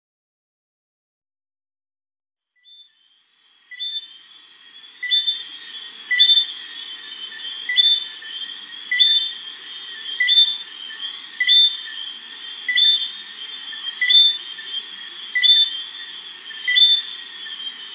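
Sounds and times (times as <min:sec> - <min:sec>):
Johnstone's whistling frog two-note whistles: 0:05.0 - 0:05.4, 0:06.1 - 0:06.5, 0:08.9 - 0:09.4, 0:10.2 - 0:10.6, 0:11.4 - 0:11.8, 0:12.7 - 0:13.2, 0:14.0 - 0:14.4, 0:15.4 - 0:15.8, 0:16.7 - 0:17.1.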